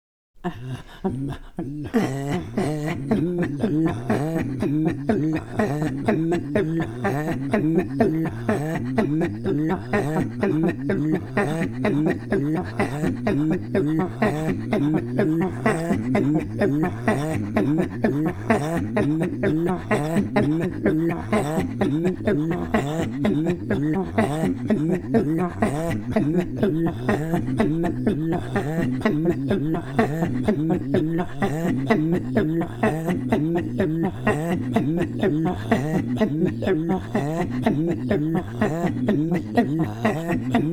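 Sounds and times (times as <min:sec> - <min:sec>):
Inuit throat singing: 0:00.4 - 0:40.7.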